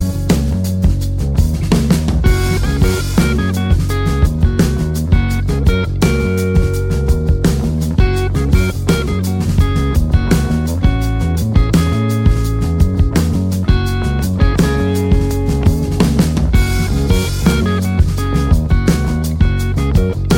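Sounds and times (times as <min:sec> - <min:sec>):
instrumental music: 0:00.0 - 0:20.3.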